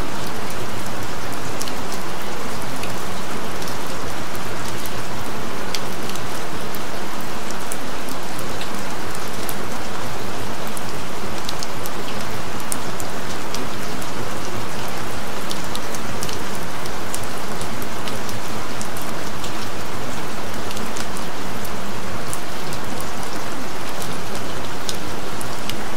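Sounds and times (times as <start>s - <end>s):
gentle rain: 0.0s - 25.9s.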